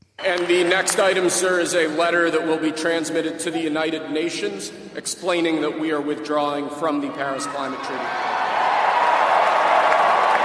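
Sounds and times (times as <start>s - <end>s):
crowd cheering and clapping as President Trump signs Paris Climate Treaty withdrawal: 0.2s - 1.4s, 7.6s - 10.4s
speech: 0.2s - 8.3s.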